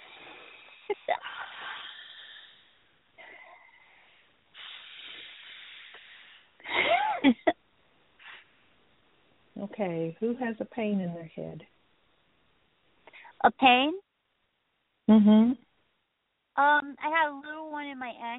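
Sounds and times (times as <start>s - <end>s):
group taking deep breaths: 0.0s - 7.1s
speech: 0.9s - 1.6s, 9.8s - 11.8s, 13.4s - 14.0s, 15.1s - 15.7s, 16.6s - 18.3s.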